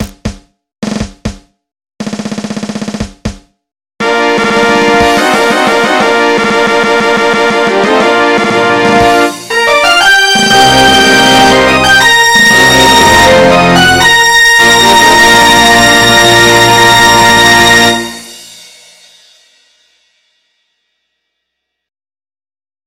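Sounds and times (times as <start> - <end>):
fanfare: 4.0 - 18.5.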